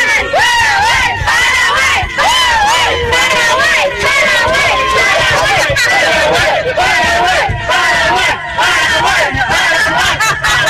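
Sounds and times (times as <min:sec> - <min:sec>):
football fans chanting and cheering: 0:00.0 - 0:10.6
laughter: 0:00.8 - 0:10.6.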